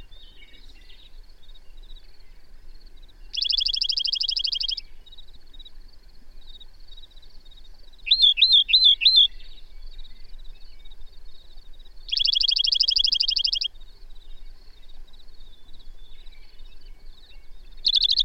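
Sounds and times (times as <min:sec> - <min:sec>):
bird song trill: 0:00.0 - 0:18.2.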